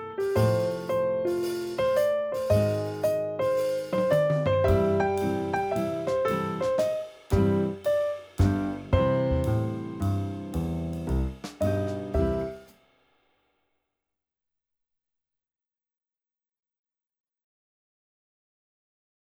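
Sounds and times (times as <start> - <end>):
big band boogie swing music: 0.0 - 12.7.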